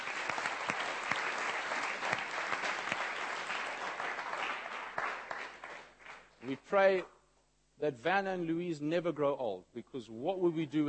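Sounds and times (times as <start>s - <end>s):
crowd of people clapping: 0.0s - 6.7s
speech: 6.5s - 7.2s, 7.8s - 10.8s.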